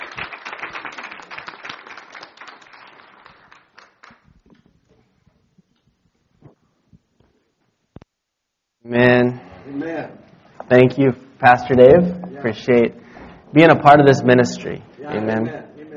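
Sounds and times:
church congregation clapping to welcome a pastor: 0.0 - 4.4
speech: 8.9 - 15.7.

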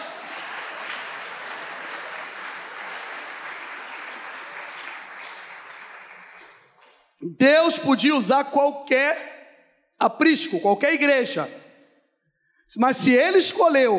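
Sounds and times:
audience applause: 0.0 - 6.8
speech: 7.2 - 9.3, 10.0 - 11.6, 12.7 - 13.9.

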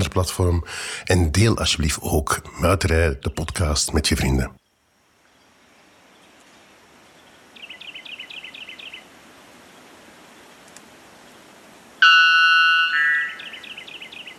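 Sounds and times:
speech: 0.2 - 4.6
white bellbird call: 12.0 - 14.3.

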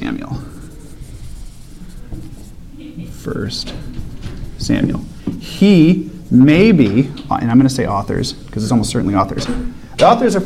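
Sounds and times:
handwriting scratching during a lecture: 0.3 - 5.6
speech: 3.2 - 3.9, 4.6 - 10.4.

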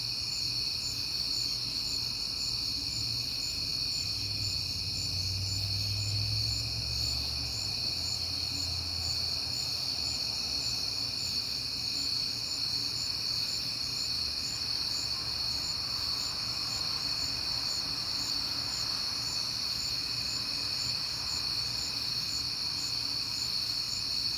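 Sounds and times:
crickets trilling: 0.0 - 24.3
car passing: 4.8 - 10.6.

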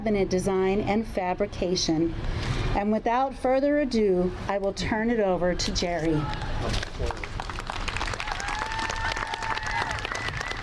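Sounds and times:
speech: 0.0 - 7.3
audience applause: 6.7 - 10.6
audience cheering: 7.8 - 10.6.

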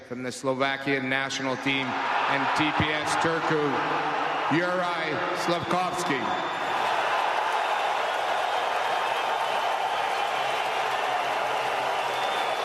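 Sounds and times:
speech: 0.1 - 6.6
hockey crowd applauding and cheering: 1.8 - 12.6.

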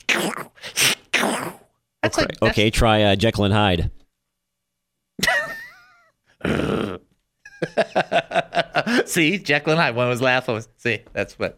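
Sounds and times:
voice imitating Donald Duck sneezing: 0.0 - 1.7
speech: 0.2 - 0.8, 2.2 - 4.0, 7.7 - 11.5
laughter: 7.5 - 9.1.

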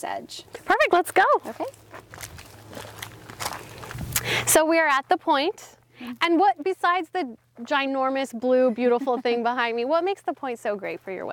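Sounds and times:
speech: 0.0 - 3.1, 4.2 - 11.3
footsteps on crushed granite trail: 0.4 - 5.4.

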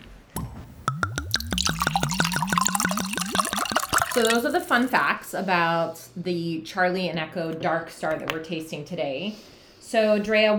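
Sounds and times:
wine bottle opening with a pop: 0.4 - 5.1
speech: 4.2 - 10.5.

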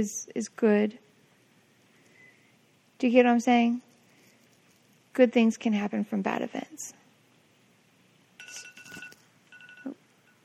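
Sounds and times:
speech: 0.0 - 1.1, 3.0 - 3.9, 5.2 - 7.0
electronic alarm: 8.4 - 10.4.

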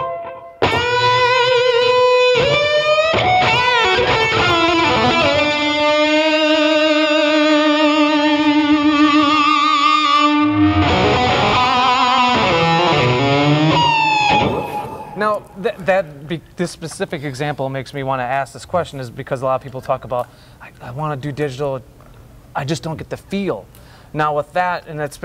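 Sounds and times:
screaming high-gain rock distortion guitar tone: 0.0 - 15.7
speech: 15.6 - 22.0, 22.6 - 25.2.

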